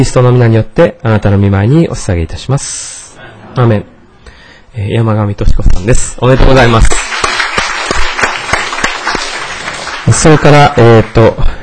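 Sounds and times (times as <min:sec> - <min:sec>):
speech: 0:00.0 - 0:03.0, 0:03.6 - 0:03.9, 0:04.8 - 0:07.0, 0:10.2 - 0:11.6
church congregation applauding: 0:06.5 - 0:11.4
sharp claps: 0:06.6 - 0:11.4.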